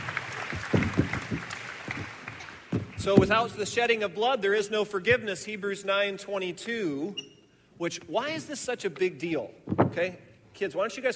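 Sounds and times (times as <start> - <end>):
audience applause: 0.0 - 3.2
speech: 3.0 - 11.1.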